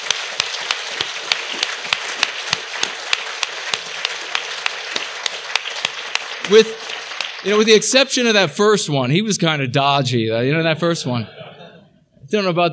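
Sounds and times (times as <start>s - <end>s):
audience applause: 0.0s - 8.3s
speech: 6.5s - 6.8s, 7.4s - 11.4s, 12.3s - 12.7s
laughter: 11.2s - 12.0s.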